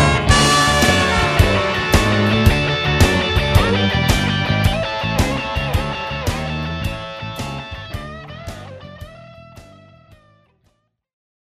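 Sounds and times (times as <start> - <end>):
blues horns: 0.0 - 8.1.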